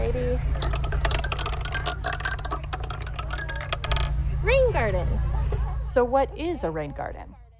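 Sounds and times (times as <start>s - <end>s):
Plinko chip bouncing down board pegs: 0.6s - 4.2s
speech: 4.8s - 5.3s, 6.0s - 7.4s.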